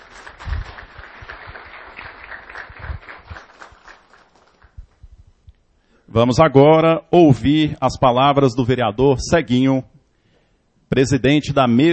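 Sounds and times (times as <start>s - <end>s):
audience applause: 0.0s - 4.8s
speech: 6.1s - 9.9s, 10.9s - 11.9s.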